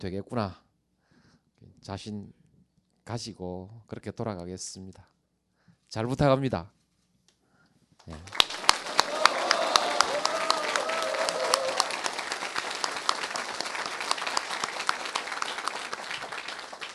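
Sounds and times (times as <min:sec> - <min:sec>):
speech: 0:00.0 - 0:00.6, 0:01.8 - 0:02.4, 0:03.1 - 0:05.1, 0:05.9 - 0:06.8, 0:08.0 - 0:08.4
audience applause after a speech: 0:08.1 - 0:16.9.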